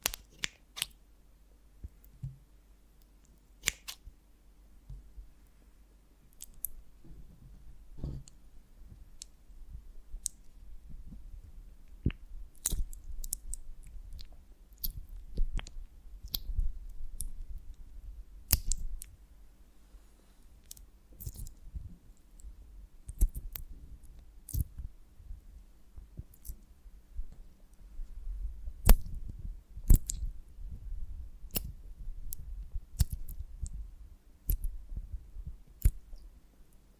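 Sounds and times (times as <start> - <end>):
honeycomb on a branch handled with clicks and snaps: 0.0 - 1.0, 3.0 - 4.0, 6.3 - 6.8, 10.2 - 10.5, 11.9 - 16.5, 18.5 - 19.2, 20.6 - 21.6, 23.1 - 23.7, 24.5 - 24.7, 26.2 - 26.6, 28.8 - 29.2, 29.9 - 30.3, 31.5 - 32.4, 33.0 - 33.8, 34.5 - 34.7, 35.8 - 36.2
low steady hum: 0.0 - 36.9.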